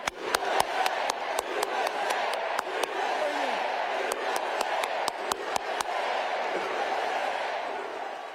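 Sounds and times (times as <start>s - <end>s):
loud individual claps: 0.0s - 3.0s, 4.0s - 6.0s
rally crowd chanting in unison: 0.0s - 8.3s.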